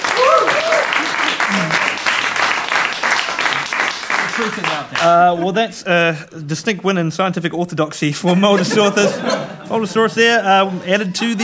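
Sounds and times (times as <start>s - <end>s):
cheers and whoops: 0.0s - 2.0s
audience clapping: 0.0s - 5.6s
laughter: 0.6s - 2.2s, 8.2s - 11.4s
speech: 4.4s - 11.4s.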